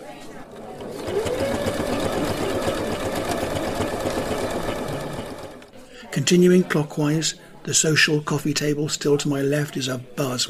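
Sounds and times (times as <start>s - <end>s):
sewing machine running: 0.4s - 5.7s
speech: 6.2s - 10.4s.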